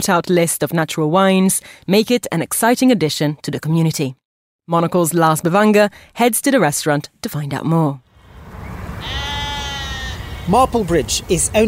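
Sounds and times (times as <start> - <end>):
speech: 0.0 - 8.0, 10.5 - 11.6
sheep bleating: 9.0 - 10.7.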